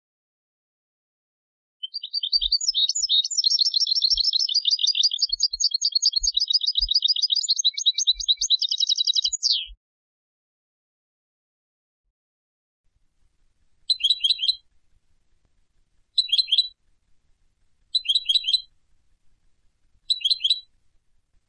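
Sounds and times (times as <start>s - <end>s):
European goldfinch Carduelis carduelis rapid bright chirps: 1.8s - 9.8s, 13.9s - 14.7s, 16.1s - 16.8s, 17.9s - 18.7s, 20.1s - 20.7s.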